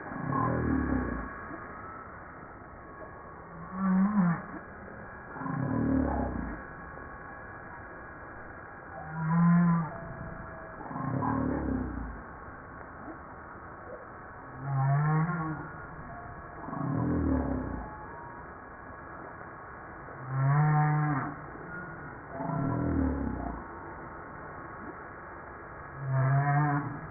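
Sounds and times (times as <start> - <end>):
humpback whale song moans and grunts: 0.0 - 2.1, 3.0 - 7.5, 8.9 - 12.4, 14.5 - 18.6, 20.2 - 24.2, 25.9 - 27.0.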